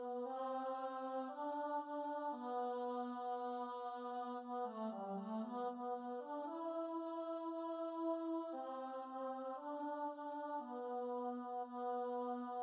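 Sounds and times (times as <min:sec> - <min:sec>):
alto voice singing a mass: 0:00.0 - 0:12.6.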